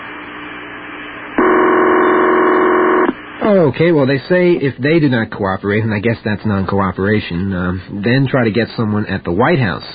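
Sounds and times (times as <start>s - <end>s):
telephone line ringing: 1.4s - 3.2s
speech: 3.4s - 9.9s.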